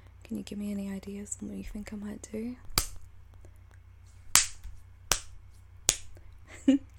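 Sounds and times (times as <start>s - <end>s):
low steady hum: 0.0s - 6.9s
speech: 0.3s - 2.7s, 6.7s - 6.9s
spanking slaps: 2.7s - 3.1s, 4.3s - 6.2s.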